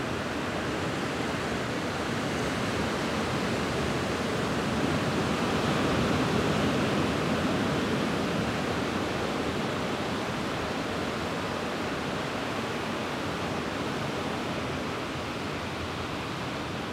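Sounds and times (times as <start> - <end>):
powerful Pacific Ocean waves crashing on a secluded sandy beach in Choco Colombia: 0.0 - 16.9.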